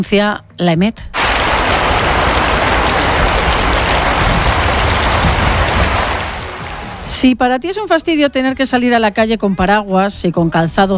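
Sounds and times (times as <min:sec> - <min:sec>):
speech: 0:00.0 - 0:01.2, 0:07.1 - 0:10.9
heavy rain shower: 0:01.2 - 0:07.2.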